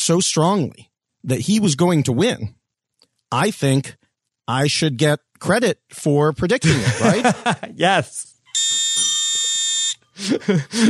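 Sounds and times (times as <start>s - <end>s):
speech: 0.0s - 2.6s, 3.3s - 9.1s, 10.2s - 10.8s
laughter: 6.6s - 7.9s, 10.2s - 10.8s
electronic buzzer: 8.5s - 10.2s.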